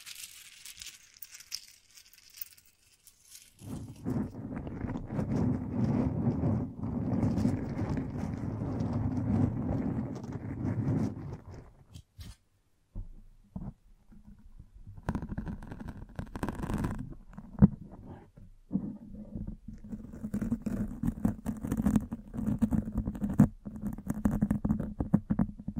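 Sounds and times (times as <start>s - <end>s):
microphone being brushed and scratched: 3.4s - 12.4s, 13.0s - 25.7s.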